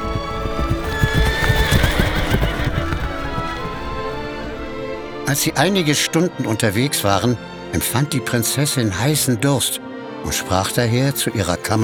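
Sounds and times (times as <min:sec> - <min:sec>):
horse hooves clip-clopping: 0:00.0 - 0:05.2
speech: 0:05.3 - 0:11.8.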